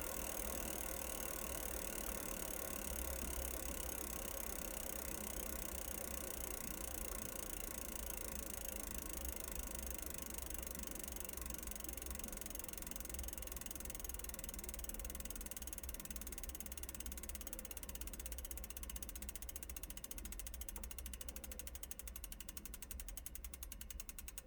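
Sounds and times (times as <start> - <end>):
bicycle pedal turning slowly: 0.0 - 24.4.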